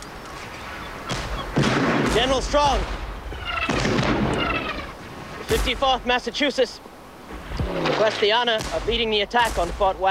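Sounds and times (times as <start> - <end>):
artillery shells striking Fort Wagner in a barrage: 1.0 - 6.3, 7.3 - 10.0
speech: 2.2 - 3.0, 5.5 - 6.9, 7.7 - 10.0.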